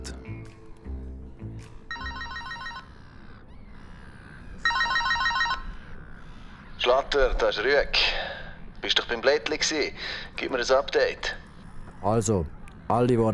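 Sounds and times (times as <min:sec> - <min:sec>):
work mobile phone ringing: 0:01.9 - 0:02.9, 0:04.6 - 0:05.7
speech: 0:06.9 - 0:08.1, 0:08.8 - 0:11.4, 0:12.0 - 0:13.3.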